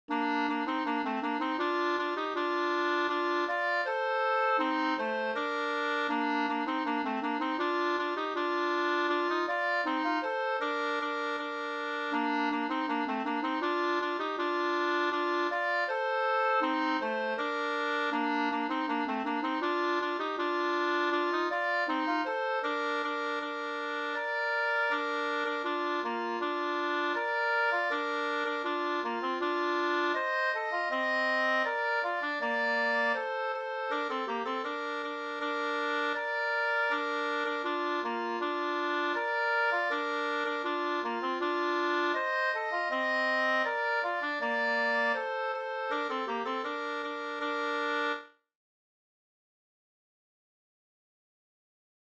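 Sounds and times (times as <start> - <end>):
folk dance music: 0.2 - 48.1.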